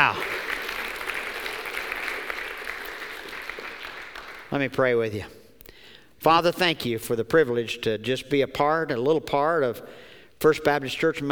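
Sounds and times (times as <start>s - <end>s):
audience applause: 0.0s - 4.6s
speech: 4.5s - 5.4s, 6.2s - 11.3s.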